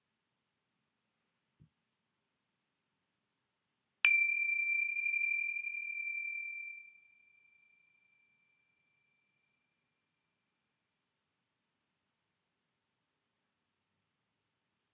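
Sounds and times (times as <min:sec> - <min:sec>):
bells: 0:04.1 - 0:09.6.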